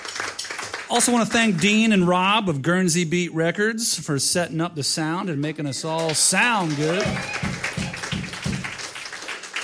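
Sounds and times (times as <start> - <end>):
crowd applause: 0.0 - 2.0, 6.0 - 9.6
speech: 0.9 - 7.6.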